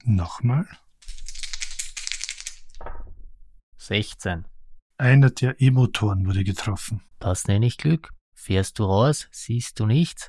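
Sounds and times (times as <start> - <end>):
speech: 0.0 - 0.8, 3.9 - 10.2
two ten-sided dice rattling and rolling: 1.0 - 2.8.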